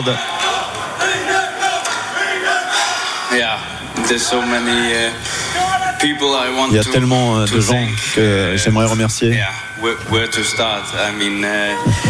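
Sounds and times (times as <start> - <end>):
speech: 0.0 - 0.4, 3.3 - 5.4, 6.0 - 12.0
crowd cheering: 0.0 - 6.8, 11.4 - 12.0.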